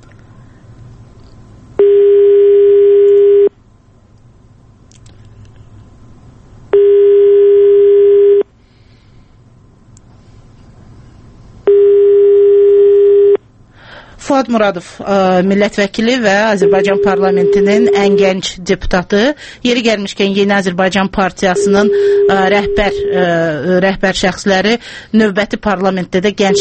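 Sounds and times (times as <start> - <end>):
ringback tone on a telephone line while waiting for a call to connect: 1.8 - 3.5, 6.8 - 8.4, 11.7 - 13.4, 16.5 - 18.4, 21.6 - 23.3
speech: 14.4 - 26.5.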